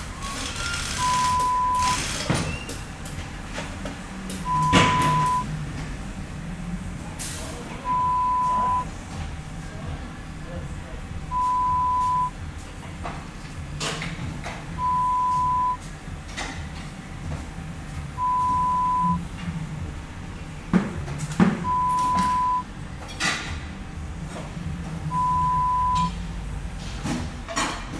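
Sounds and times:
garage ambience: 0.0s - 27.9s.

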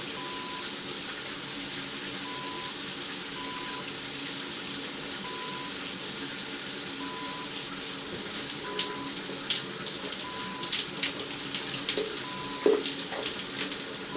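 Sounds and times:
shower running: 0.0s - 14.1s.

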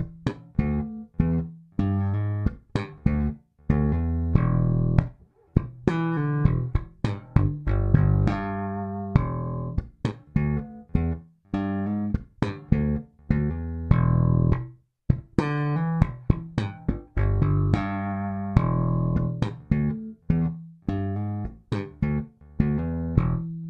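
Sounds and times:
slap bass in E7 with double thumbing: 0.0s - 23.6s.

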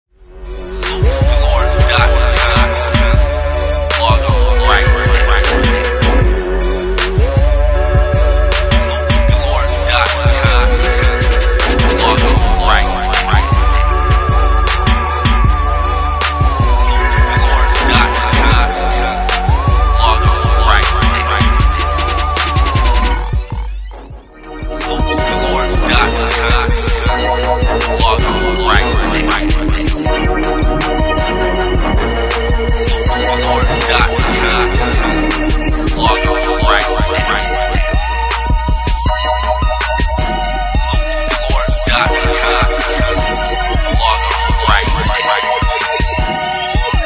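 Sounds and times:
Dirty South hip hop loops: 0.3s - 47.0s.

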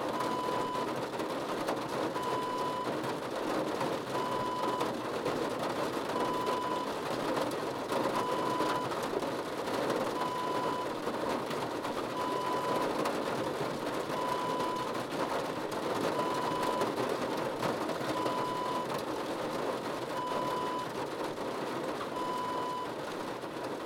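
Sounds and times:
rain on car roof: 0.0s - 23.8s.

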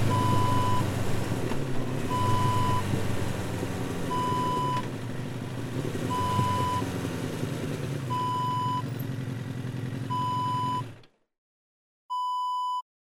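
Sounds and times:
motorcycle riding: 0.0s - 11.2s.

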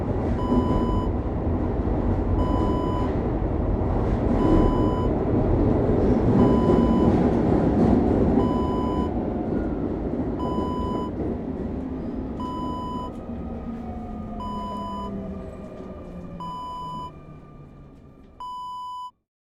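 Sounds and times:
metro interior ambience: 0.0s - 18.5s.

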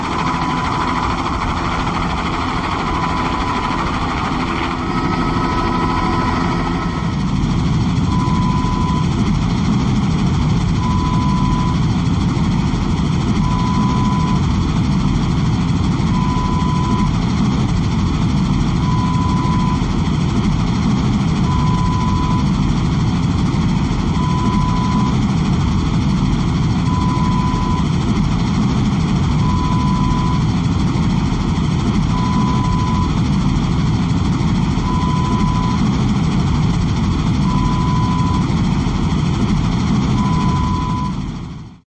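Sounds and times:
lo-fi helicopter sound: 0.0s - 41.8s.

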